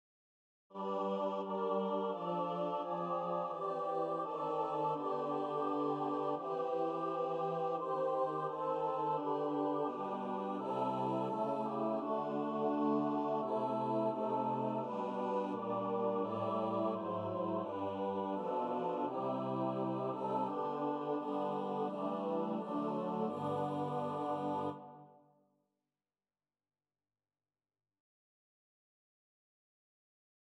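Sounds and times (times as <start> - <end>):
choir singing: 0.7 - 25.2.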